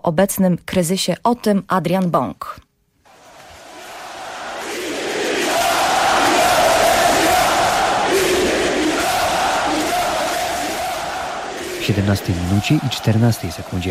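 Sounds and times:
speech: 0:00.0 - 0:02.7, 0:11.9 - 0:13.8
FC Barcelona fans chanting for Catalan independence at Camp Nou: 0:03.1 - 0:13.8.

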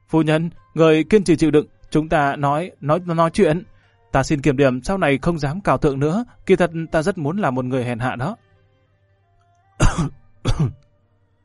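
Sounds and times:
speech: 0:00.1 - 0:08.4, 0:09.8 - 0:10.8
violent dry coughing: 0:09.8 - 0:10.8.

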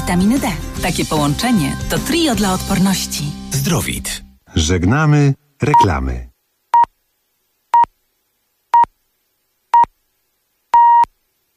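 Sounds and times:
speech: 0:00.1 - 0:06.3
Polish public radio time signal beeps marking eight o'clock: 0:10.8 - 0:11.1.

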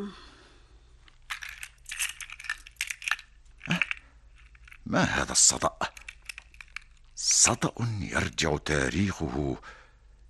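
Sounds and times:
speech: 0:00.0 - 0:00.3, 0:04.9 - 0:05.9, 0:07.5 - 0:09.8
keys jingling as key cabinet is opened: 0:01.2 - 0:04.9, 0:05.8 - 0:07.2.

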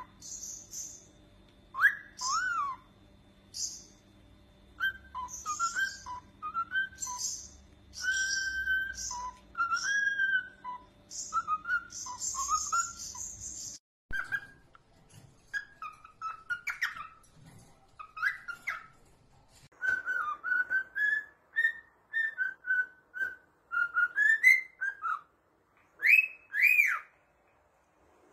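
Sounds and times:
faint low hum: 0:00.0 - 0:28.3
cockatiel whistling: 0:01.7 - 0:02.9, 0:04.8 - 0:14.7, 0:15.5 - 0:17.2, 0:18.0 - 0:18.9, 0:19.8 - 0:25.3, 0:26.0 - 0:27.1.

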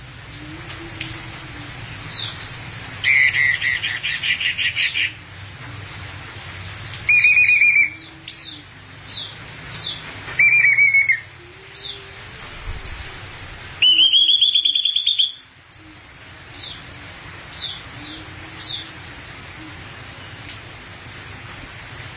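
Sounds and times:
thrush singing: 0:00.2 - 0:05.2, 0:07.1 - 0:20.5.

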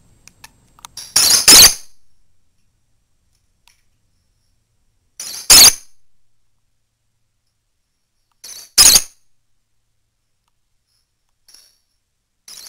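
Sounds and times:
female lovebird squeaking: 0:01.2 - 0:01.9, 0:05.5 - 0:05.9, 0:08.8 - 0:09.2.

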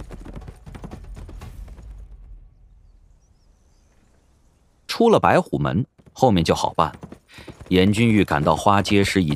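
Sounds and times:
horse hooves galloping away: 0:00.0 - 0:02.0, 0:05.5 - 0:09.3
speech: 0:05.0 - 0:09.3.

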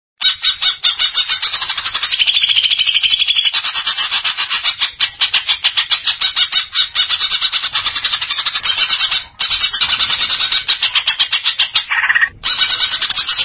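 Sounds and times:
greater green leafbird song: 0:00.2 - 0:13.4.

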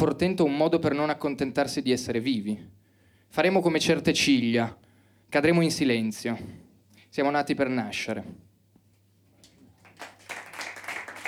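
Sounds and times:
speech: 0:00.0 - 0:08.4
audience applause: 0:09.8 - 0:11.2.

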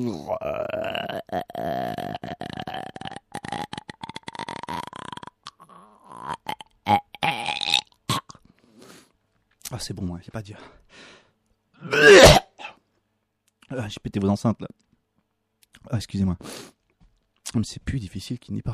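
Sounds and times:
speech: 0:00.0 - 0:01.2, 0:09.8 - 0:10.8, 0:13.9 - 0:14.8, 0:15.9 - 0:16.7, 0:17.5 - 0:18.7
person gagging from a finger pushed down the throat: 0:00.0 - 0:08.4, 0:11.9 - 0:12.7
person belching from a finger pushed down the throat: 0:00.0 - 0:08.5, 0:11.8 - 0:12.7.

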